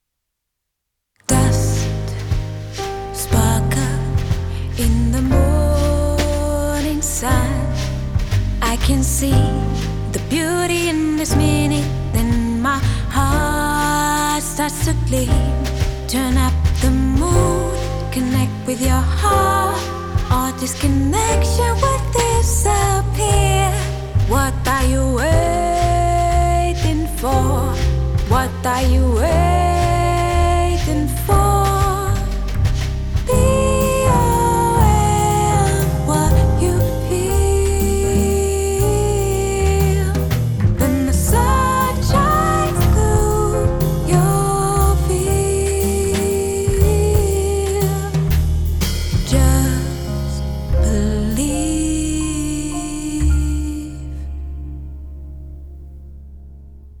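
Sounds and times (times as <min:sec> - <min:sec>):
full mix song with vocals: 0:01.3 - 0:54.9.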